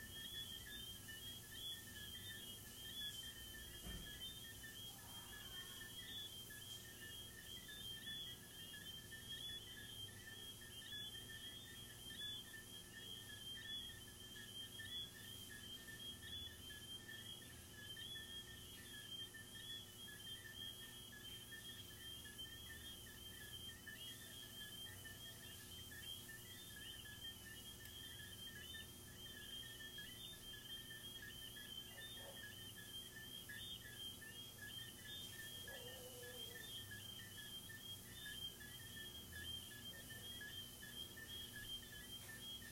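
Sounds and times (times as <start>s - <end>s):
crickets trilling: 0.0s - 42.6s
low hiss: 0.0s - 42.6s
low pulsing chirps: 0.0s - 42.6s.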